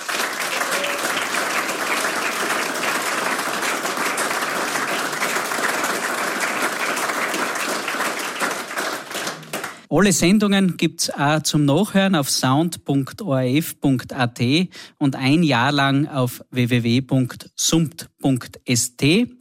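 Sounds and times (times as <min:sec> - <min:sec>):
audience applause: 0:00.0 - 0:09.9
speech: 0:09.9 - 0:19.3.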